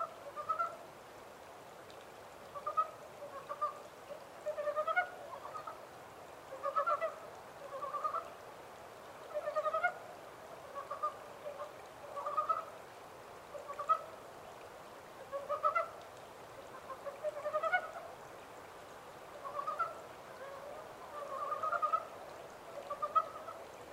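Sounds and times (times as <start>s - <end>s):
Japanese mountain brown frog calling: 0.0s - 0.8s, 2.5s - 5.8s, 6.5s - 8.3s, 9.2s - 10.0s, 10.6s - 12.8s, 13.5s - 14.1s, 15.3s - 16.0s, 16.6s - 18.1s, 19.3s - 23.9s
faint hiss: 0.0s - 23.9s.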